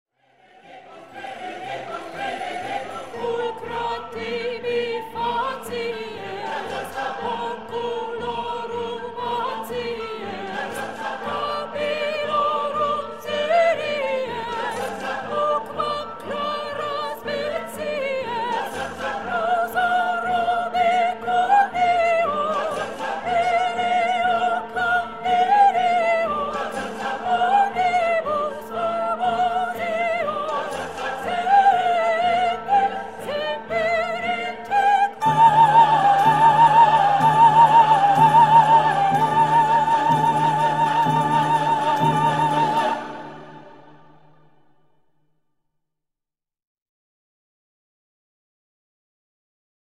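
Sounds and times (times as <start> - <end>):
soprano choir singing slowly: 0.2 - 44.7.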